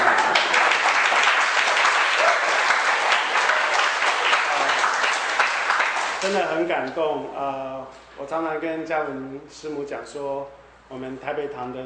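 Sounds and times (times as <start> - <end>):
sparse applause: 0.0 - 6.5
speech: 6.3 - 11.8.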